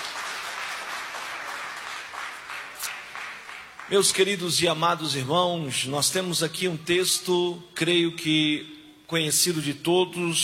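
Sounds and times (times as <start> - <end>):
crowd applauding: 0.0 - 4.6
speech: 3.9 - 10.4.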